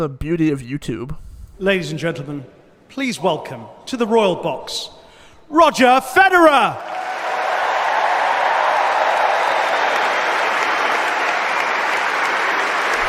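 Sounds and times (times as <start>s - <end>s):
speech: 0.0s - 7.0s
stadium crowd applause: 6.8s - 13.0s.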